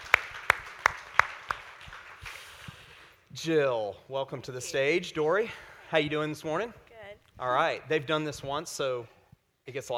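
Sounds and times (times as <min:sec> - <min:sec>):
audience applause: 0:00.0 - 0:02.6
speech: 0:03.4 - 0:06.8, 0:07.4 - 0:09.9.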